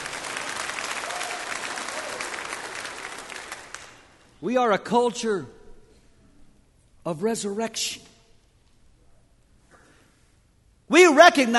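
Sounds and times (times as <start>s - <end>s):
audience applause: 0.0s - 4.2s
speech: 4.4s - 5.6s, 7.1s - 8.1s, 10.9s - 11.5s.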